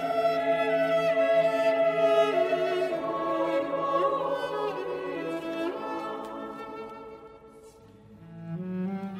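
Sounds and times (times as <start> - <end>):
vocal quartets for cello and choir: 0.0 - 9.0.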